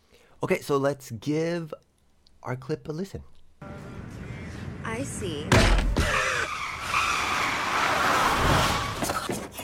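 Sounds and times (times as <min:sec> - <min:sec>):
speech: 0:00.4 - 0:01.8, 0:02.4 - 0:03.7, 0:05.0 - 0:05.9
car lurching to a stop with bumps: 0:05.4 - 0:09.5
car tires squealing in a skid while braking hard: 0:06.0 - 0:09.4.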